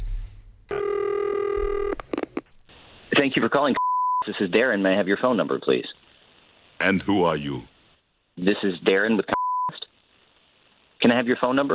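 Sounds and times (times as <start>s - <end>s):
telephone tone as a call is placed to a cable company: 0.7s - 2.2s
speech: 3.2s - 6.0s, 6.8s - 7.7s, 8.4s - 9.4s, 11.1s - 11.7s.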